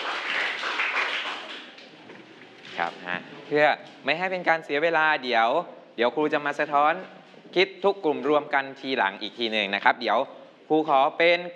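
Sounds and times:
applause for a student group: 0:00.0 - 0:02.9
speech: 0:02.8 - 0:11.5.

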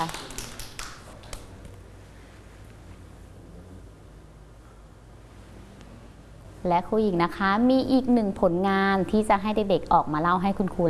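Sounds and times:
speech: 0:00.0 - 0:00.3, 0:06.6 - 0:10.8
children clapping: 0:00.0 - 0:01.6.

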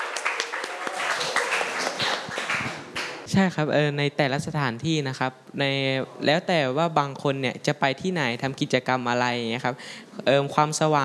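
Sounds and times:
group of people clapping for class leader: 0:00.0 - 0:03.3
speech: 0:03.3 - 0:11.0.

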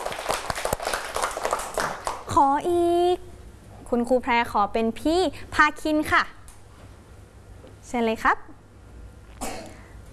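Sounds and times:
children clapping in a classroom: 0:00.0 - 0:02.3
speech: 0:02.3 - 0:03.3, 0:03.9 - 0:06.4, 0:07.9 - 0:08.6.

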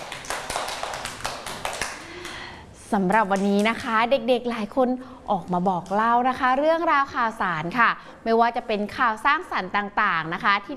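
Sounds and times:
children clapping for a classmate during a kids' sharing session: 0:00.0 - 0:02.5
speech: 0:02.9 - 0:10.7.

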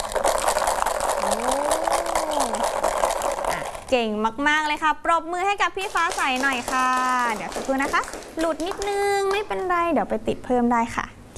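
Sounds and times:
beads rattling inside a homemade bottle shaker: 0:00.0 - 0:04.0, 0:05.8 - 0:09.3
speech: 0:03.9 - 0:11.3.

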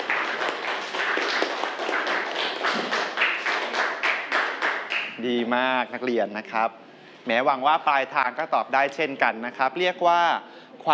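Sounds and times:
students clapping: 0:00.0 - 0:05.2
speech: 0:05.2 - 0:10.9.

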